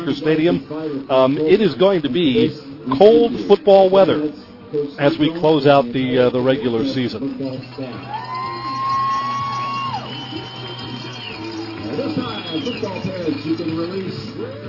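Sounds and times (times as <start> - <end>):
speech: 0.0 - 8.2, 12.0 - 14.6
big crowd cheering at a football game: 7.6 - 14.6
shouts and whoops: 8.0 - 11.8.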